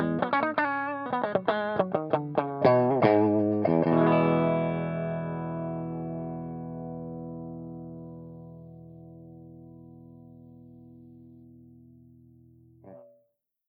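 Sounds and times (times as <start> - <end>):
clean channel of a Rockerverb amplifier: 0.0 - 13.2.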